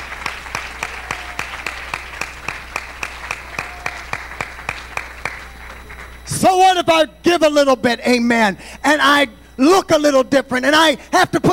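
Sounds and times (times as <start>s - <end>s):
audience clapping in unison: 0.0s - 6.3s
speech: 6.4s - 11.5s.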